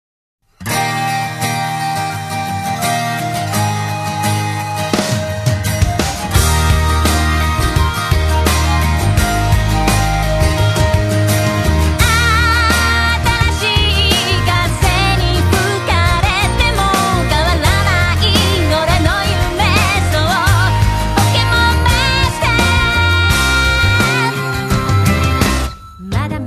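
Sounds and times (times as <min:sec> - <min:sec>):
acoustic music: 0:00.6 - 0:26.4.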